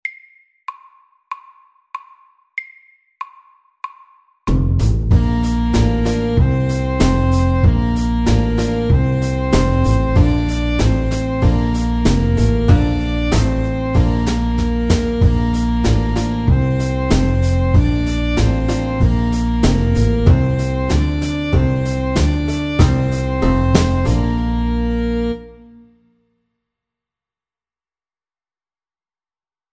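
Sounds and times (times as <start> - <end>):
slow square dance music: 5.1 - 25.6.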